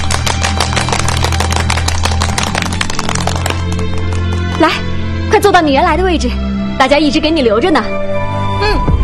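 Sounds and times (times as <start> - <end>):
classroom applause: 0.0 - 4.7
speech: 4.6 - 8.9.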